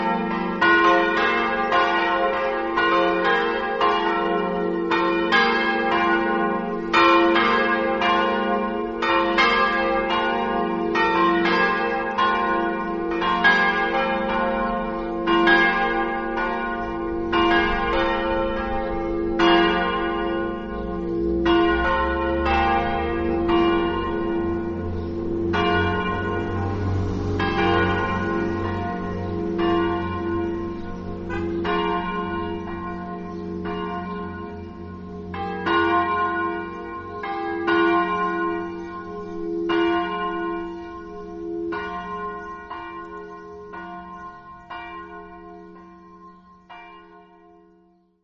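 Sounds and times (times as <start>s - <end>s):
church bells ringing in Medeuzza: 0.0s - 48.2s.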